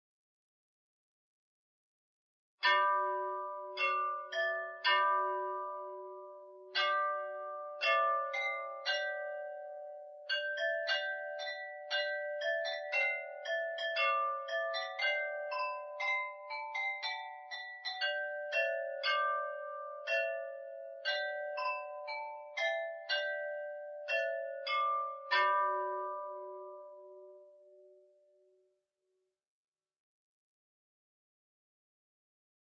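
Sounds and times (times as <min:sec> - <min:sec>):
glockenspiel: 0:02.6 - 0:28.7.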